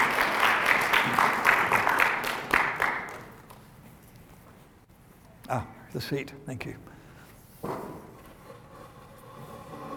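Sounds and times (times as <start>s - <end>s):
audience clapping: 0.0s - 3.7s
speech: 5.5s - 6.9s.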